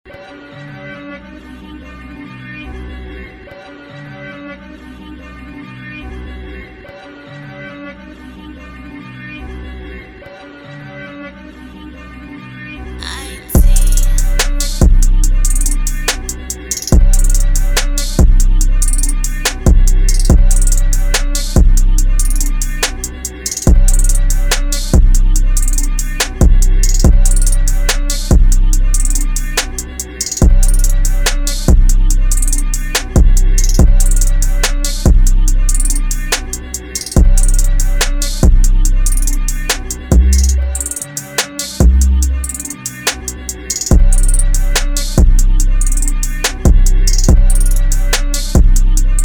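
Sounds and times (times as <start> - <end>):
instrumental music: 13.0 - 49.2.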